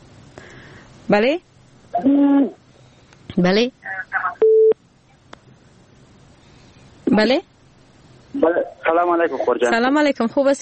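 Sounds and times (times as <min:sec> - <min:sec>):
speech: 0:01.1 - 0:02.6, 0:03.3 - 0:04.0, 0:07.2 - 0:07.5, 0:08.4 - 0:10.6
telephone busy tone after a dropped call: 0:04.4 - 0:04.8.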